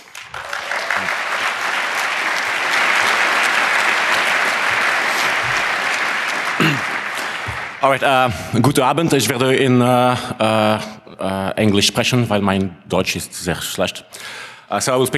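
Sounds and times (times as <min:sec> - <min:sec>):
audience applause: 0:00.0 - 0:08.6
speech: 0:07.8 - 0:15.1.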